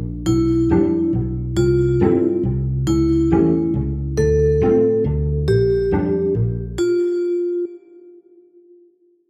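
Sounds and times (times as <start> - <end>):
cello: 0.0 - 6.8
vibraphone: 0.0 - 8.2.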